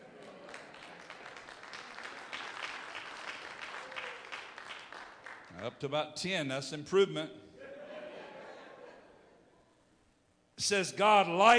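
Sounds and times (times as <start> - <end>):
single clap from audience: 0.5 - 5.5
speech: 5.6 - 7.4, 10.6 - 11.5
laughter: 7.6 - 9.7.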